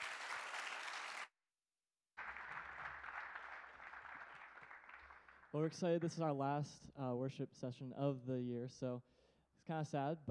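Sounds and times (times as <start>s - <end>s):
audience applause: 0.0s - 1.3s, 2.2s - 5.6s
speech: 5.5s - 10.3s.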